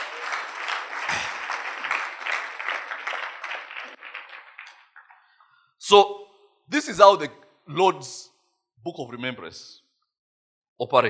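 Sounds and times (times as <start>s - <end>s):
audience applauding: 0.0s - 5.5s
speech: 5.9s - 6.2s, 6.8s - 9.8s, 10.8s - 11.0s.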